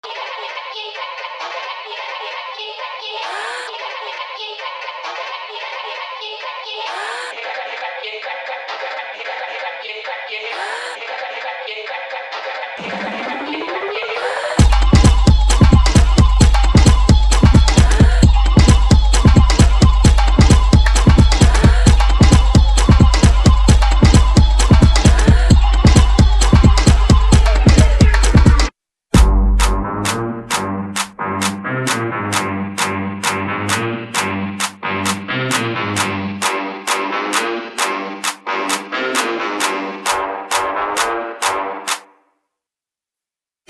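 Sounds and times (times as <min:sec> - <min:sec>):
instrumental music: 0:14.6 - 0:42.0.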